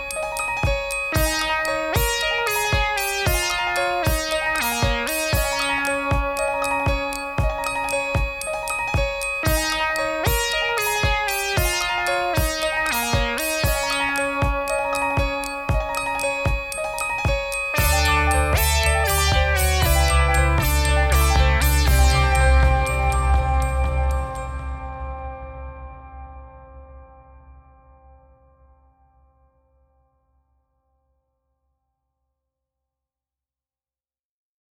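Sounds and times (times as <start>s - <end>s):
triangle: 0.0s - 26.1s.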